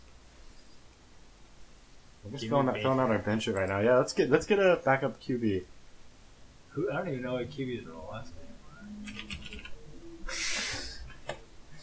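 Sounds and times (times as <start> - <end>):
speech: 2.2 - 5.7, 6.8 - 8.4
typing on a computer keyboard: 9.0 - 9.7.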